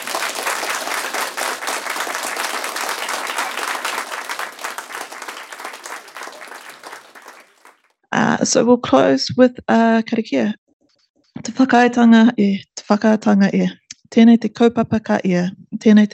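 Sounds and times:
audience round of applause: 0:00.0 - 0:07.8
speech: 0:08.4 - 0:10.6, 0:11.5 - 0:16.1.

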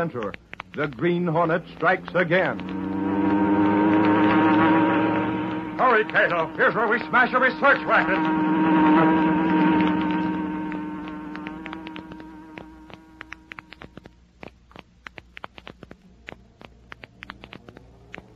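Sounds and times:
speech: 0:00.0 - 0:02.9, 0:05.8 - 0:09.4
light clicks and ticks: 0:00.0 - 0:03.0, 0:09.8 - 0:18.3
inexpensive electric fan whirring: 0:00.0 - 0:18.3.

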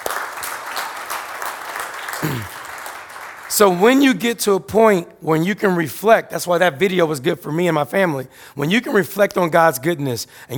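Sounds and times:
audience clapping: 0:00.0 - 0:04.2
speech: 0:02.2 - 0:02.6, 0:03.5 - 0:10.5.

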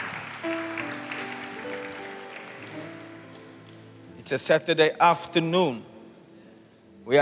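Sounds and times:
audience clapping: 0:00.0 - 0:03.8
speech: 0:04.3 - 0:05.9.

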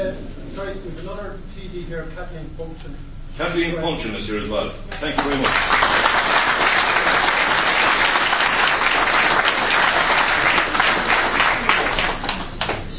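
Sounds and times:
speech: 0:00.1 - 0:06.9
audience applause: 0:05.1 - 0:12.9.

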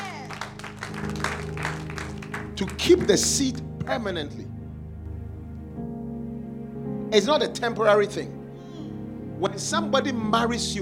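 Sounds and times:
audience clapping: 0:00.0 - 0:03.6
organ-like tones: 0:00.0 - 0:08.1
speech: 0:02.6 - 0:04.4, 0:07.1 - 0:08.4, 0:09.4 - 0:10.8.

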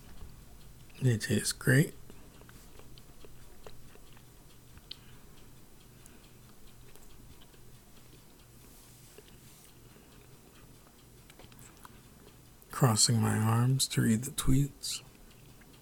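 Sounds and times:
steady low fan hum: 0:00.0 - 0:15.8
speech: 0:01.0 - 0:02.0, 0:12.8 - 0:15.1
chewing and crunching of cashews: 0:02.0 - 0:08.4, 0:09.1 - 0:12.7, 0:15.0 - 0:15.8.

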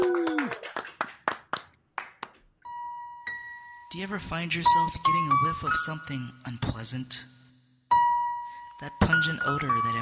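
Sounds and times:
round of applause: 0:00.0 - 0:02.5
speech: 0:03.9 - 0:07.4, 0:08.8 - 0:10.0.

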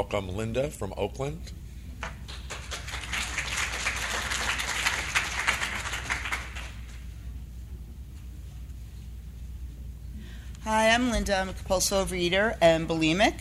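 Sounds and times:
speech: 0:00.0 - 0:02.1, 0:10.7 - 0:13.3
audience applause: 0:02.3 - 0:06.9.

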